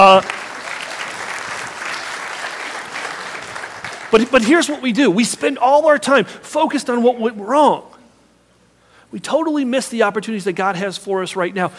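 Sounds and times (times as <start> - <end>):
speech: 0.0 - 0.4, 4.1 - 7.9, 9.1 - 11.7
audience applause: 0.0 - 4.7.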